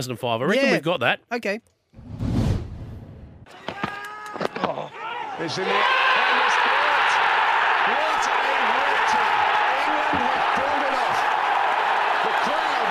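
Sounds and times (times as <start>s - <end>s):
speech: 0.0s - 2.3s, 5.4s - 6.0s
cricket stadium crowd cheering: 3.5s - 12.8s
many voices shouting and whooping: 3.5s - 12.8s.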